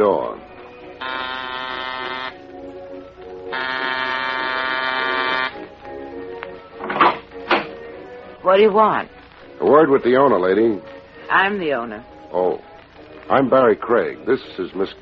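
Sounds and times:
speech: 0.0 - 0.5, 8.5 - 12.7, 13.3 - 15.0
doorbell buzzer: 1.0 - 2.4, 3.5 - 5.7.

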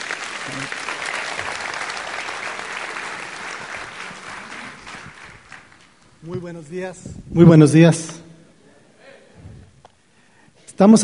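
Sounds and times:
audience applause: 0.0 - 6.0
speech: 6.2 - 8.2, 10.8 - 11.0.

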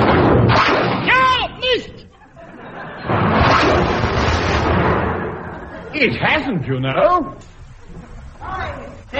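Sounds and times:
big gun firing: 0.0 - 1.1, 3.0 - 5.6
voices and chuckling laughter: 1.6 - 4.0, 5.0 - 9.1
speech: 6.0 - 7.5.

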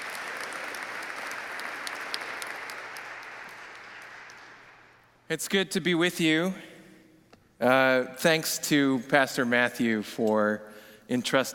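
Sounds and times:
crowd clapping: 0.0 - 5.2
speech: 5.3 - 6.7, 7.6 - 11.5.

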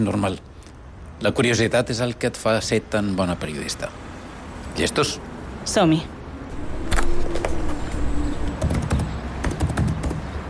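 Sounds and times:
speech: 0.0 - 0.5, 1.2 - 4.1, 4.8 - 6.7
low steady hum: 6.4 - 9.2
typing commands on a computer terminal: 8.5 - 10.4.

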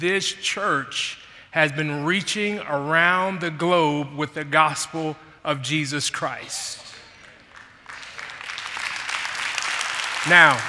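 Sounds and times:
speech: 0.0 - 6.9, 10.2 - 10.6
audience clapping: 6.8 - 10.6.

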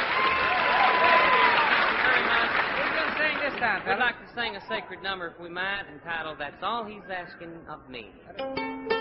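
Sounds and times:
audience applause welcoming performers at a country show: 0.0 - 4.1
speech: 3.8 - 8.9.

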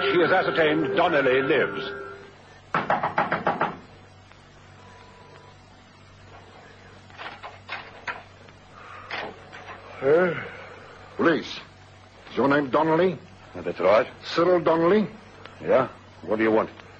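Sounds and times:
speech: 0.1 - 2.1, 11.2 - 11.7, 12.4 - 16.8
knocking on the door of a house in Nelson Street: 2.7 - 3.8.

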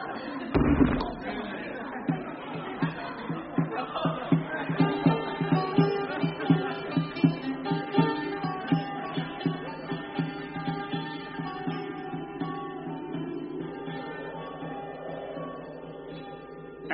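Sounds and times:
soft rhythmic music or chanting with muted beats: 0.0 - 16.9
heavy door slamming shut: 0.6 - 1.5.

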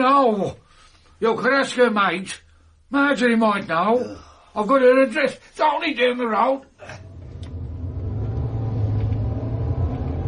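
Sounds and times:
speech: 0.0 - 0.6, 1.2 - 7.0
car engine rumbling while driven recklessly: 7.0 - 10.2
road drone: 7.0 - 10.2.

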